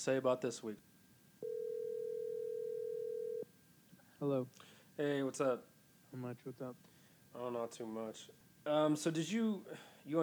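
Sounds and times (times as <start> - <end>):
speech: 0.0 - 0.9, 4.2 - 10.2
telephone dial tone while calling a radio show caller: 1.4 - 3.4.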